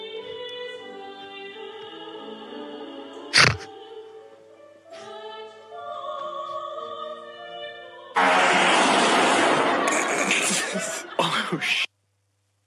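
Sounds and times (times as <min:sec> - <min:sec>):
loud aggressive fart: 0:03.3 - 0:03.7, 0:08.2 - 0:10.8
laughter: 0:09.4 - 0:11.9.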